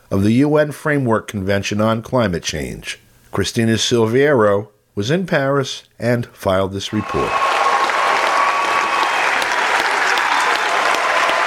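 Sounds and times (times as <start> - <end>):
speech: 0.1 - 7.5
cheers and whistles: 6.9 - 11.4
impassioned applause and standing ovation from a large crowd: 7.0 - 11.4.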